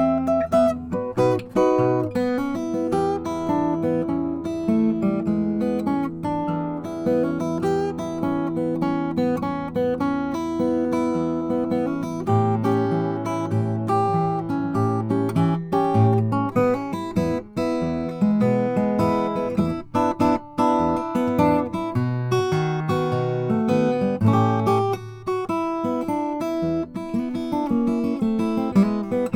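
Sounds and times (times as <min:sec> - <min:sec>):
13 fret Cuban mahogany acoustic guitar: 0:00.0 - 0:29.3.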